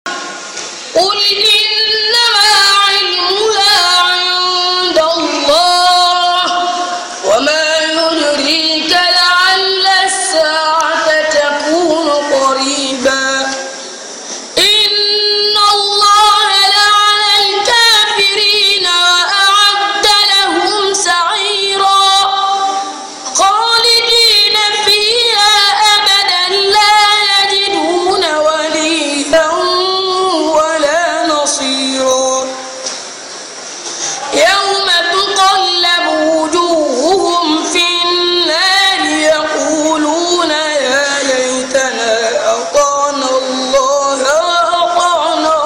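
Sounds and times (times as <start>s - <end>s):
African boy reciting the Quran: 0.9s - 13.9s, 14.6s - 32.8s, 34.2s - 45.6s.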